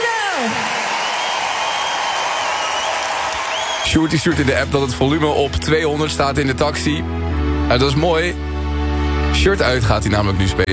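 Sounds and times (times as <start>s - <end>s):
audience applause: 0.0s - 4.9s
speech: 3.9s - 8.5s, 9.4s - 10.7s.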